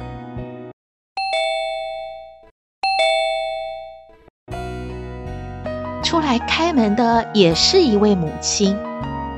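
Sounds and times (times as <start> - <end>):
doorbell ringing: 1.2 - 4.2
speech: 6.1 - 9.1.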